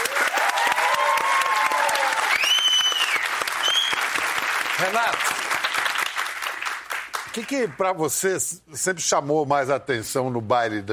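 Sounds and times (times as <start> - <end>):
audience applause: 0.0 - 7.9
speech: 4.8 - 5.4, 7.4 - 10.9.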